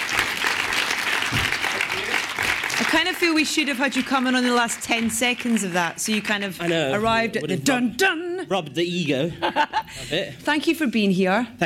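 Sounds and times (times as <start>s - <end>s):
audience clapping for a film composer at the British Film Institute: 0.0s - 7.4s
speech: 3.0s - 11.6s.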